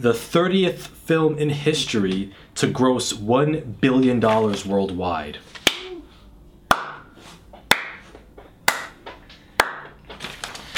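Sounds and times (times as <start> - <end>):
speech: 0.0 - 5.6
studio audience slow clapping: 7.7 - 8.0, 8.7 - 10.0.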